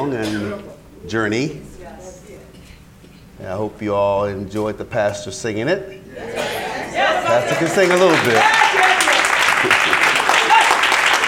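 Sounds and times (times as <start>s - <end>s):
speech: 0.0s - 1.7s, 3.4s - 6.6s, 7.3s - 8.5s
church congregation clapping after the pastor's song: 7.0s - 11.2s.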